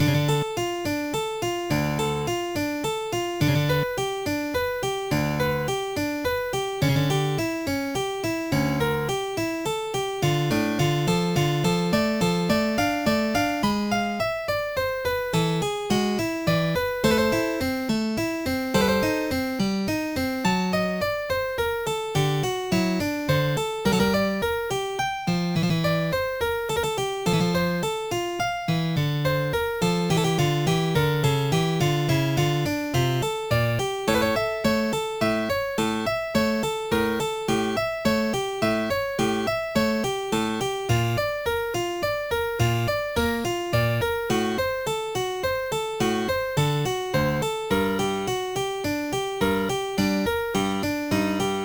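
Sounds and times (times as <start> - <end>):
prelude: 0.0 - 51.6.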